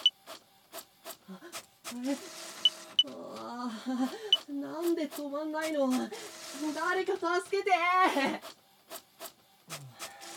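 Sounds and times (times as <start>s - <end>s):
speech: 1.9s - 2.4s, 3.0s - 8.6s
photocopier running and ejecting paper: 1.9s - 3.2s, 4.2s - 9.4s, 10.0s - 10.3s.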